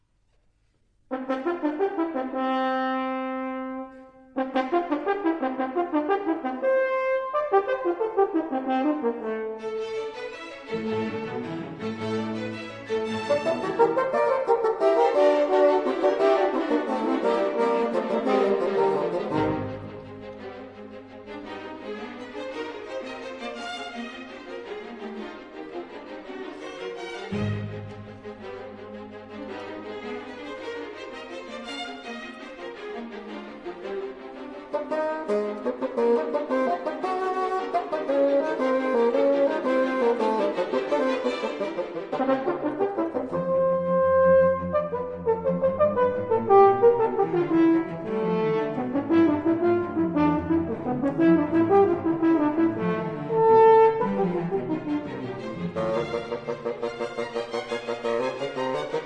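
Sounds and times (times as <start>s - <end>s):
bassoon in a double concerto: 1.1s - 9.9s, 13.0s - 20.8s, 34.6s - 59.0s
horn in a double concerto: 1.1s - 20.8s, 34.4s - 59.0s.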